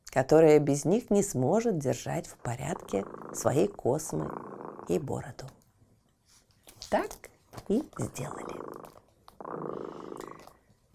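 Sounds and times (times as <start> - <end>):
speech: 0.1 - 5.6, 6.9 - 8.6
cat purring: 1.6 - 5.6, 7.8 - 10.8.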